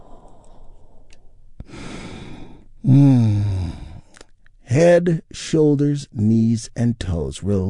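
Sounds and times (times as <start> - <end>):
big deep inhale during a guided relaxation: 0.0 - 4.2
loud voiced sigh releasing a deep breath: 0.0 - 4.3
speech: 4.8 - 7.6.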